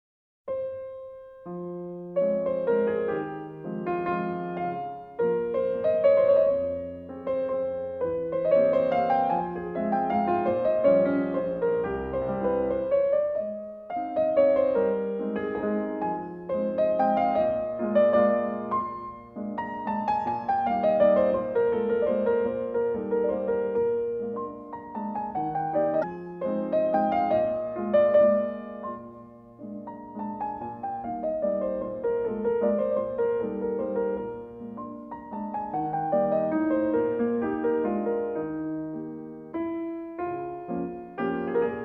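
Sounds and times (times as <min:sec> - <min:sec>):
waltz: 0:00.6 - 0:41.8.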